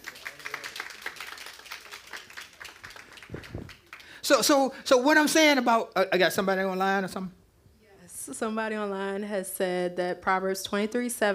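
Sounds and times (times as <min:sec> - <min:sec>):
audience hand clapping: 0:00.0 - 0:04.7
speech: 0:04.3 - 0:07.4, 0:08.3 - 0:11.3.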